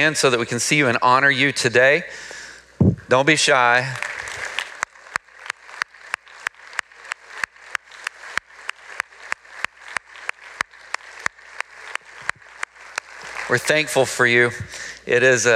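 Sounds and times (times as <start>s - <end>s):
speech: 0.0s - 4.2s, 13.5s - 15.5s
audience applauding: 3.7s - 14.5s.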